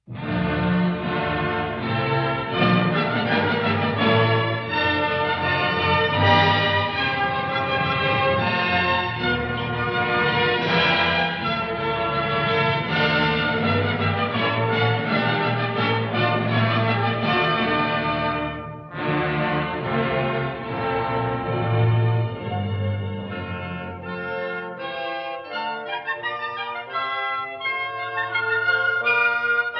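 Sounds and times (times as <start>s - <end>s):
orchestra: 0.0s - 29.7s.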